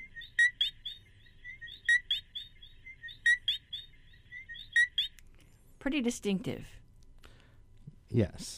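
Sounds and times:
coqui frog call: 0.0s - 5.2s
speech: 5.8s - 6.8s, 8.1s - 8.5s.

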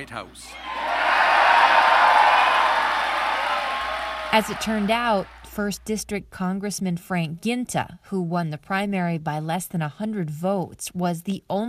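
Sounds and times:
speech: 0.0s - 0.7s, 4.4s - 11.6s
audience applause at a political event: 0.6s - 5.5s.

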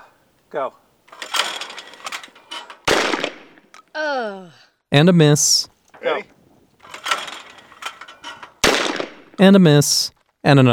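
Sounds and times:
speech: 0.5s - 0.9s, 4.0s - 6.4s, 9.4s - 10.7s
shotgun with a slightly longer barrel firing at a clay target: 2.8s - 3.6s, 8.6s - 9.4s.

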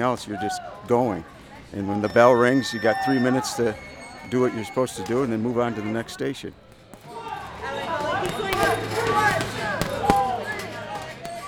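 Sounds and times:
speech: 0.0s - 6.6s
chatter and voices: 0.0s - 11.4s
punches on a heavy bag: 8.2s - 11.4s.

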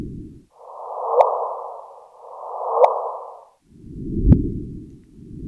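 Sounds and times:
gravitational waves from colliding black holes rendered as whooshes: 0.5s - 4.6s.

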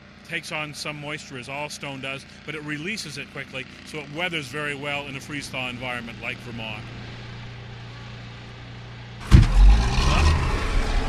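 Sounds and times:
speech: 0.3s - 7.1s
truck engine rumbling: 0.8s - 11.0s
vehicle door shutting: 9.2s - 10.0s.

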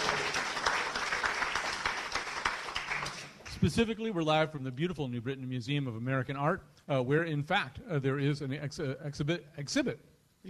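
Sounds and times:
live audience applauding at an art museum: 0.0s - 3.6s
speech: 3.6s - 10.4s.

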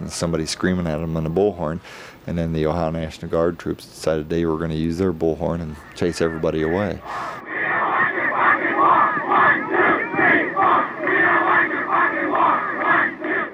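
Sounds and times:
speech: 0.1s - 7.4s
large crowd chanting at a protest: 5.8s - 13.5s.

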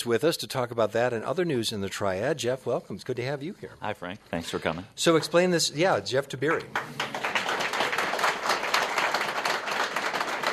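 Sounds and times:
speech: 0.0s - 7.2s
studio audience applause during a television interview: 6.5s - 10.5s.

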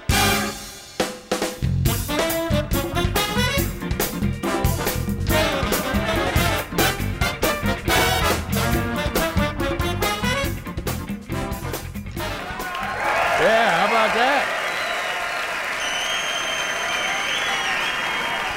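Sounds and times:
music: 0.0s - 13.5s
concert audience applause: 12.3s - 18.5s
whoops and cheers: 12.4s - 18.5s.

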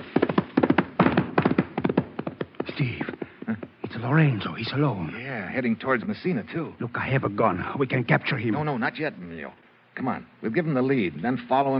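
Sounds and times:
horse approaching, hoofbeats: 0.0s - 4.2s
speech: 4.0s - 11.7s.

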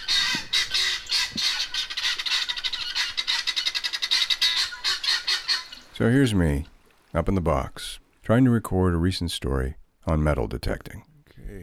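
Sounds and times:
guinea hens calling: 0.0s - 6.8s
speech: 6.0s - 11.6s.

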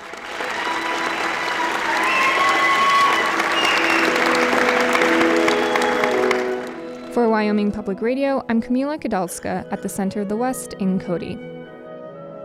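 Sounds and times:
auditorium audience cheering: 0.0s - 7.0s
speech: 7.4s - 11.6s.

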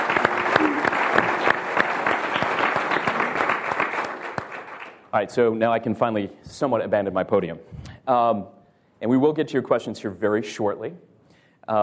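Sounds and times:
audience applause for a panel: 0.0s - 5.0s
speech: 5.2s - 11.1s.

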